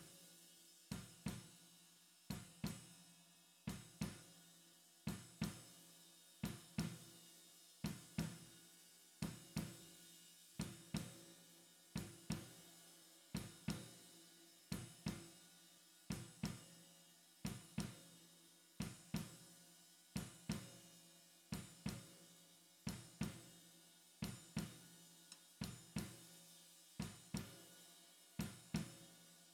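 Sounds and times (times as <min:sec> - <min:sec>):
snare drum: 0:00.9 - 0:01.7, 0:02.3 - 0:04.4, 0:05.0 - 0:05.8, 0:06.4 - 0:07.2, 0:07.8 - 0:08.6, 0:09.2 - 0:14.1, 0:14.7 - 0:15.4, 0:16.1 - 0:16.8, 0:17.4 - 0:18.1, 0:18.8 - 0:19.4, 0:20.2 - 0:23.6, 0:24.2 - 0:27.8, 0:28.4 - 0:29.5.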